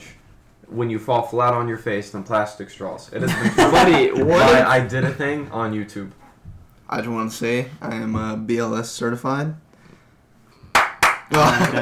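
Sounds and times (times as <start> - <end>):
speech: 0.7 - 6.2, 6.9 - 9.6, 11.3 - 11.7
laughter: 3.2 - 5.4, 11.3 - 11.7
hand claps: 10.6 - 11.7.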